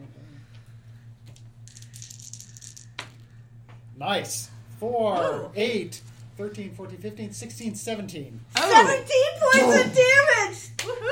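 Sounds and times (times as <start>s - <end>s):
dice rattling and rolling: 1.3s - 3.3s
speech: 4.0s - 11.1s.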